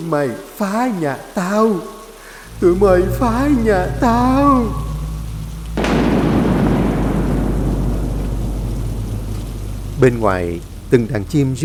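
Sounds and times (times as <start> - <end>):
speech: 0.0 - 2.0, 2.6 - 4.9, 10.0 - 11.6
heavy rain pouring down: 0.0 - 11.6
low rumbling tones: 2.3 - 11.6
loud crack-like onset: 2.4 - 11.6.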